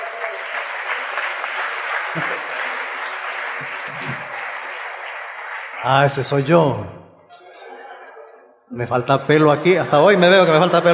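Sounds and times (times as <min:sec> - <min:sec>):
audience applause: 0:00.0 - 0:06.6
speech: 0:02.1 - 0:02.5, 0:05.8 - 0:07.0, 0:08.8 - 0:10.9.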